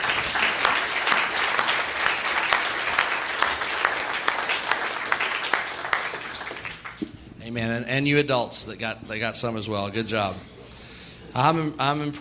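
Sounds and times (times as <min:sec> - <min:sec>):
audience clapping hands: 0:00.0 - 0:07.1
speech: 0:07.5 - 0:10.5, 0:11.4 - 0:12.1.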